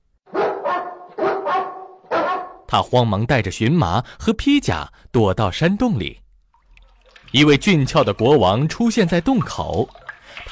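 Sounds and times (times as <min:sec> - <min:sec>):
hunting dogs barking: 0:00.3 - 0:02.7
speech: 0:02.7 - 0:06.2, 0:07.3 - 0:10.5.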